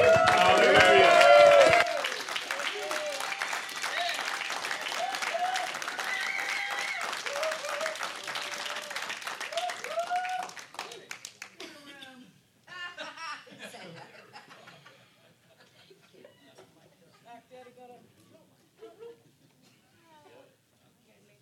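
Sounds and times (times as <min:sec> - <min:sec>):
audience applause welcoming a speaker: 0:00.0 - 0:11.6
laughter: 0:12.7 - 0:17.4, 0:18.8 - 0:19.8.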